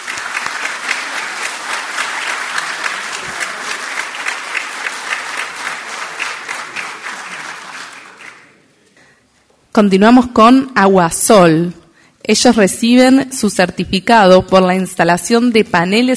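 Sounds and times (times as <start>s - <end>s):
audience applause: 0.0s - 8.7s
speech: 9.8s - 16.1s.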